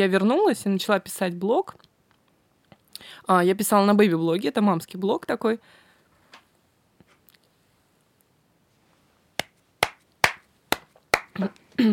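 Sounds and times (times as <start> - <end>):
speech: 0.0 - 1.9, 3.0 - 5.8, 11.4 - 11.9
hand clap marking an edit point: 9.4 - 11.4.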